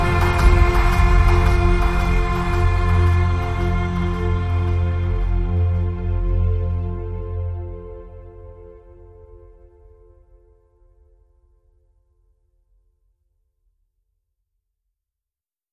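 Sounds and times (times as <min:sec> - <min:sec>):
cinematic ocean music: 0:00.0 - 0:10.5.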